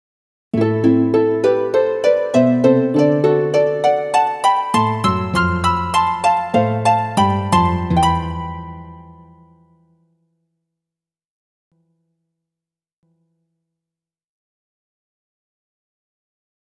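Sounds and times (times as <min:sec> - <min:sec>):
harp: 0:00.6 - 0:09.7.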